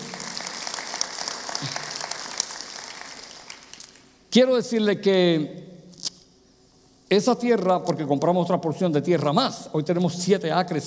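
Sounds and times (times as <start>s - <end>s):
audience applause: 0.0s - 3.8s
speech: 1.6s - 1.8s, 4.4s - 5.6s, 7.1s - 10.8s.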